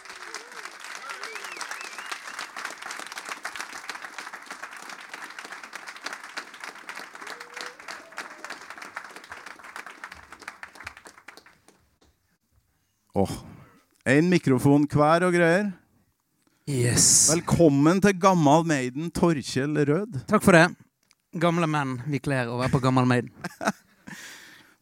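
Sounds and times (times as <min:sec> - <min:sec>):
faint whoops and cheers: 0:00.0 - 0:02.5, 0:07.0 - 0:09.7
audience applause: 0:00.0 - 0:11.8
speech: 0:13.2 - 0:13.5, 0:14.1 - 0:15.8, 0:16.7 - 0:23.8
laughter: 0:22.6 - 0:23.8.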